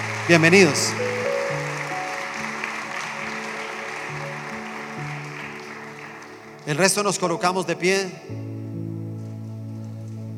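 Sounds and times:
audience applause: 0.0s - 7.4s
speech: 0.3s - 1.2s, 6.7s - 8.4s.

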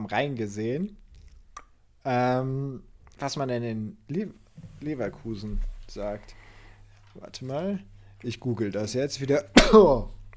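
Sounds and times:
speech: 0.1s - 1.0s, 2.0s - 6.4s, 7.2s - 10.2s
cough: 9.6s - 10.1s.

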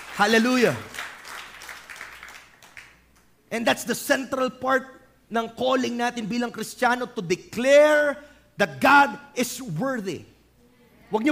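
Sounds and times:
church congregation clapping for the Lord: 0.0s - 3.3s
speech: 0.2s - 0.9s, 3.5s - 10.3s, 11.1s - 11.3s.

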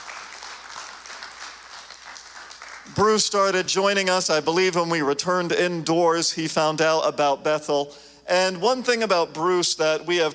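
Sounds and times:
audience applause: 0.0s - 3.0s
speech: 2.9s - 10.3s.

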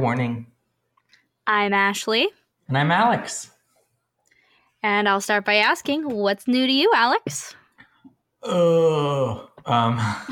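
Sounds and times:
speech: 0.0s - 0.5s, 1.5s - 3.5s, 4.8s - 7.6s, 8.4s - 10.2s
tired person groaning: 8.4s - 10.2s.

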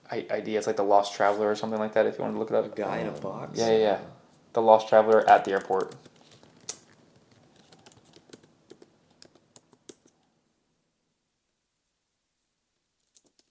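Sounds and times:
speech: 0.1s - 6.1s
faint quick keystrokes on a computer keyboard: 5.0s - 10.2s.

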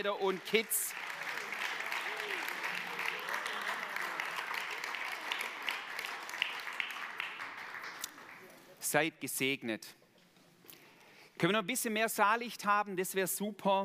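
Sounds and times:
speech: 0.0s - 1.1s, 8.9s - 10.0s, 11.4s - 13.8s
large crowd applauding in a reverberant room: 0.0s - 8.8s.

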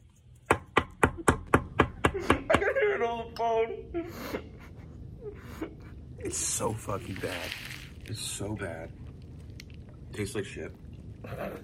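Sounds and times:
tapping a hard food item on a desk: 0.4s - 2.7s
speech: 2.2s - 4.5s, 5.2s - 9.0s, 10.2s - 11.6s.

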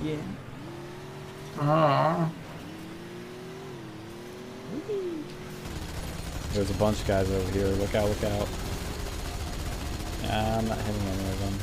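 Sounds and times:
speech: 0.0s - 0.5s, 1.6s - 2.4s, 6.5s - 8.7s, 10.2s - 11.6s
car engine in a video game: 0.0s - 11.6s.

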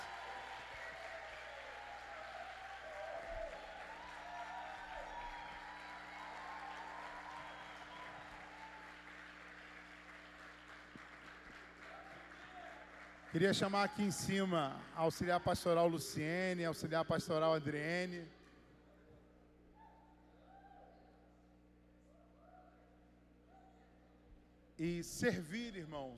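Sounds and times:
church congregation applauding: 0.0s - 15.8s
speech: 13.3s - 18.4s, 24.8s - 26.1s.

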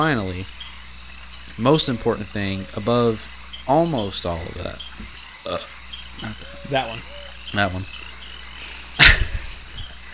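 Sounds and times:
speech: 0.0s - 0.6s, 1.5s - 8.1s
person burping: 5.4s - 5.7s.

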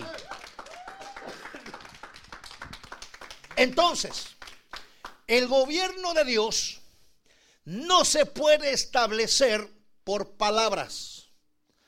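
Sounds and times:
audience applause: 0.0s - 5.2s
speech: 3.6s - 4.3s, 5.3s - 6.8s, 7.7s - 11.1s.

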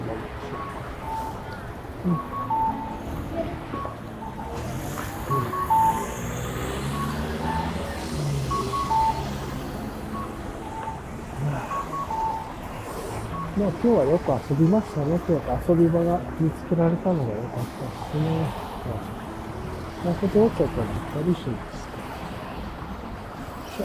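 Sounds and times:
steady traffic noise in a busy street: 0.0s - 23.8s
short electronic beeps: 0.4s - 14.0s
speech: 2.0s - 2.3s, 13.6s - 19.2s, 20.0s - 21.8s.

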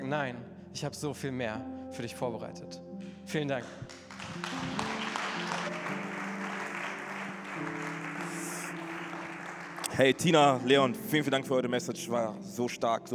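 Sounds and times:
speech: 0.1s - 4.9s, 10.0s - 13.1s
audience applause: 3.9s - 11.1s.

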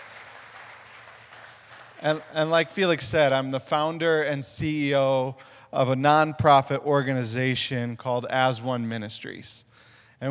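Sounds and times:
audience round of applause: 0.0s - 2.5s
speech: 2.0s - 10.2s.

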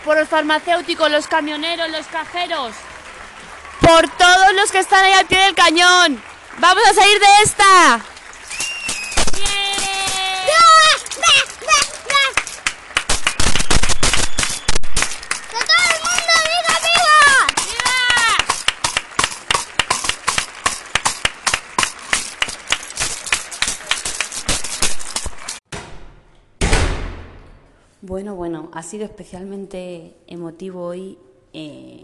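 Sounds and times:
speech: 0.0s - 2.9s, 3.9s - 8.1s, 28.2s - 32.0s
neighbours applauding from their balconies: 0.0s - 25.6s
whistles and cheering voices: 8.4s - 12.5s, 13.2s - 18.4s.

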